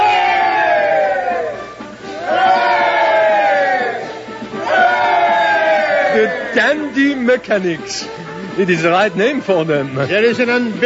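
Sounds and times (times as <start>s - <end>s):
crowd giving three cheers: 0.0s - 7.2s
speech: 6.2s - 10.8s.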